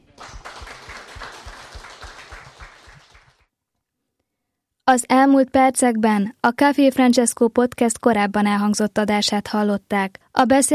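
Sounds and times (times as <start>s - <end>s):
audience applause: 0.0s - 3.5s
speech: 4.9s - 10.7s.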